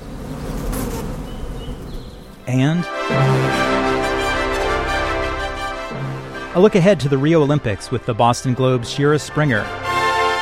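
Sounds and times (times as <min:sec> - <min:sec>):
honeybees and a bumblebee buzzing inside a box: 0:00.0 - 0:06.6
speech: 0:02.5 - 0:03.8, 0:06.6 - 0:09.9.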